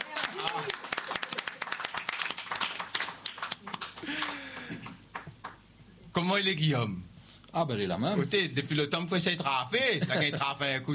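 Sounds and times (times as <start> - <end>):
audience applause: 0.0 - 5.6
speech: 6.2 - 10.9.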